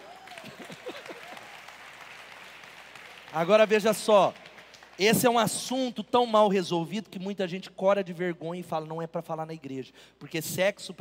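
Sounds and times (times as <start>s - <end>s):
audience applause: 0.0s - 5.0s
speech: 3.3s - 4.4s, 5.0s - 10.9s.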